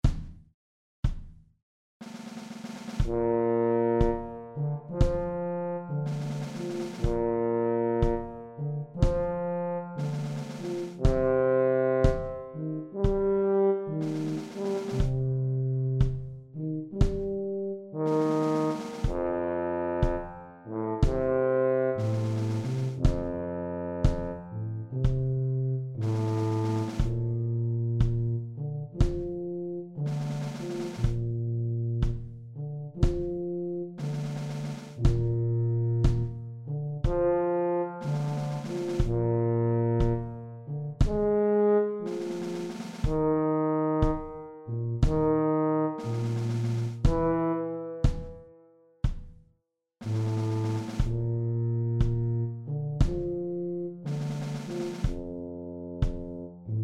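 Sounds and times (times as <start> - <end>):
tuba: 3.0 - 48.6, 50.0 - 56.8.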